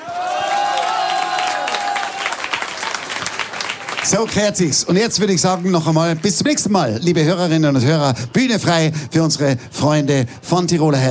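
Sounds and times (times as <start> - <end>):
audience applause: 0.0 - 4.8
speech: 4.0 - 11.1.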